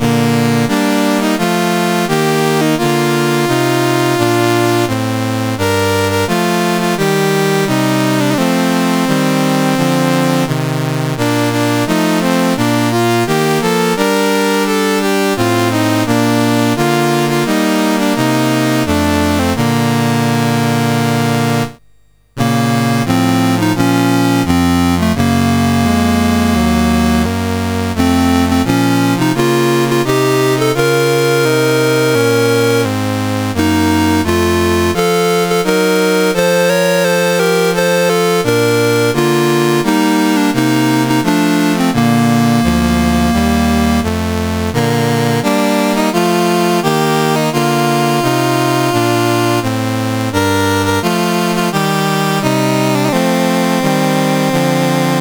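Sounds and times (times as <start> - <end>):
CSG8580R5 chiptune national anthem: 0.0 - 55.1.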